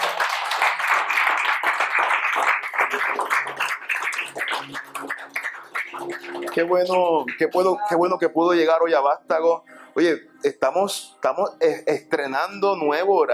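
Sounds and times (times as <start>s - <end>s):
audience applause: 0.0s - 7.8s
speech: 6.6s - 13.3s.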